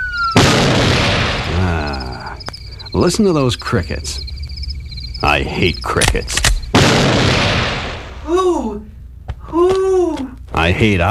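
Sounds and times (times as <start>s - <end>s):
steady high siren-like tone: 0.0s - 0.4s
shotgun blast: 0.4s - 1.6s, 6.7s - 8.2s
speech: 3.0s - 4.3s, 5.2s - 7.2s, 8.3s - 8.9s, 9.5s - 11.0s.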